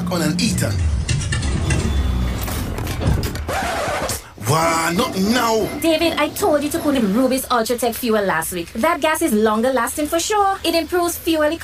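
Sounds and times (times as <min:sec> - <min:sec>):
car engine struggling to start: 0:00.0 - 0:07.2
speech: 0:00.1 - 0:01.0, 0:04.5 - 0:11.6.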